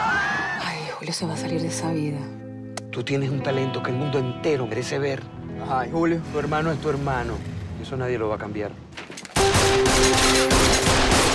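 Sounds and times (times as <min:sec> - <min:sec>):
speech: 0:01.0 - 0:08.8
rapid gunfire: 0:09.4 - 0:11.3.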